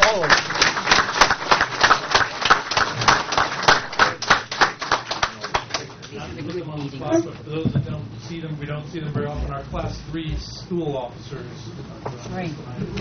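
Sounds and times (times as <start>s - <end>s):
audience applause: 0.0s - 6.1s
speech: 8.8s - 12.9s.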